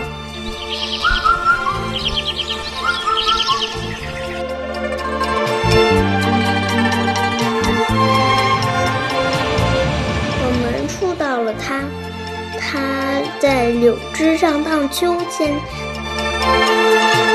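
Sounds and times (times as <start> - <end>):
magpie and cuckoo singing: 0.0 - 5.8
steady instrumental music: 0.0 - 17.3
speech: 13.4 - 15.8.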